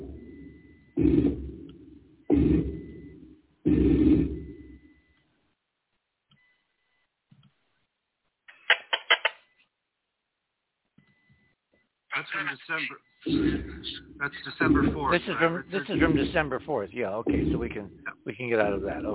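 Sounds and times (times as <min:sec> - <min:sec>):
slowed-down radio transmission chirps: 0:00.0 - 0:05.2, 0:11.0 - 0:19.1
speech: 0:12.3 - 0:19.1.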